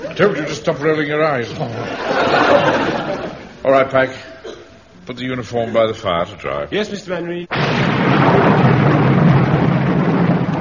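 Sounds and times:
laughter: 0.0 - 3.6
speech: 0.2 - 4.3, 5.1 - 8.4
thunderstorm: 7.5 - 10.6.

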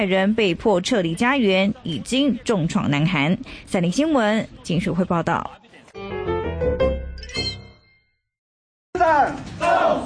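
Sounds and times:
speech: 0.0 - 6.1
crowd shouting campaign slogans: 9.0 - 10.0.

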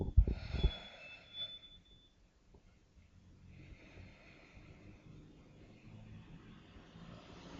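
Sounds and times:
deep guided breath: 0.1 - 1.8, 3.4 - 6.0.

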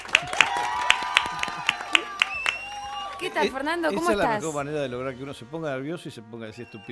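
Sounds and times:
few people clapping for a guest arriving on a talk show: 0.0 - 4.5
speech: 3.2 - 6.9.

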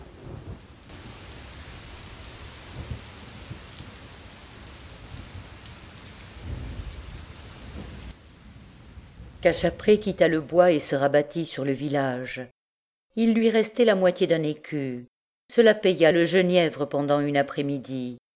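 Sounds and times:
distant thunder: 0.0 - 10.8
steady rain: 0.0 - 11.0
speech: 9.4 - 12.6, 13.2 - 18.2.

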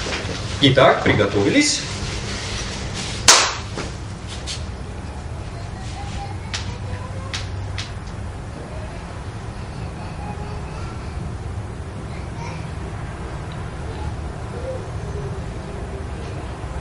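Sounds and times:
steady low hum: 0.0 - 16.7
speech: 0.6 - 1.9
single sharp hand clap: 3.3 - 3.8, 6.5 - 6.7, 7.3 - 8.2.

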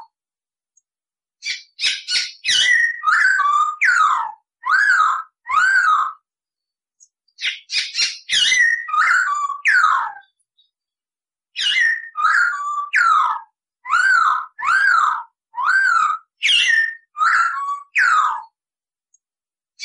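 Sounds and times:
Masked laughingthrush singing loud whistled and chattering notes: 1.4 - 6.3, 7.3 - 10.7, 11.5 - 18.5.

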